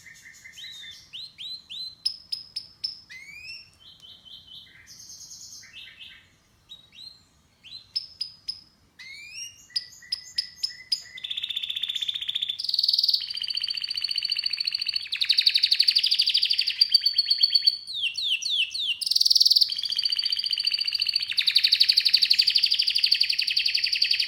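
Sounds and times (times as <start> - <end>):
canary song with rapid rolling trills and slurred notes: 0.0 - 24.2.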